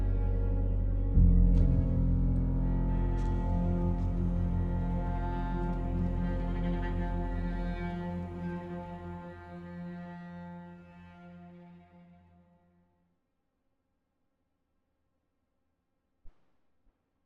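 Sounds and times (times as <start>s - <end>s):
tuned piano: 0.0s - 8.4s.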